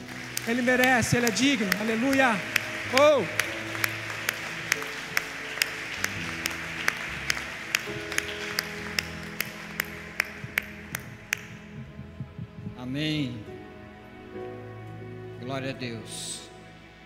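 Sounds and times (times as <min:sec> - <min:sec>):
audience applause: 0:00.0 - 0:11.6
speech: 0:00.5 - 0:03.4, 0:13.0 - 0:13.4, 0:15.6 - 0:16.4.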